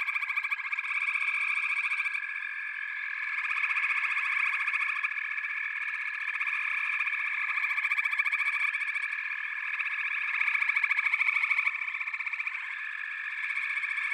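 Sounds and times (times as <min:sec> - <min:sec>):
frog chorus: 0:00.0 - 0:14.1.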